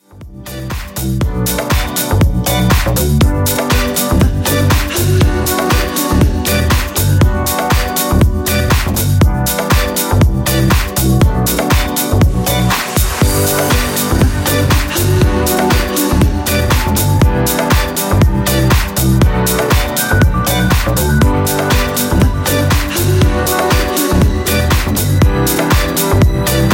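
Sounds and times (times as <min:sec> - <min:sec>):
club house music at 120 BPM: 0:00.0 - 0:26.7.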